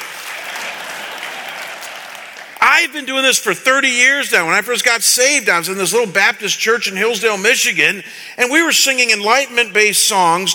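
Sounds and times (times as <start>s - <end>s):
audience clapping: 0.0s - 3.1s
speech: 2.8s - 10.5s.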